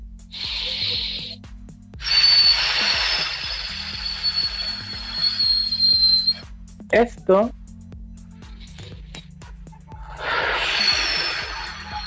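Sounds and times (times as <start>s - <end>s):
soft low music: 0.0s - 12.0s
speech: 0.3s - 0.5s, 6.9s - 7.6s
slow whistling exhale through pursed lips as a breathing exercise: 0.3s - 1.4s, 2.0s - 6.4s, 8.5s - 9.4s, 10.1s - 12.0s.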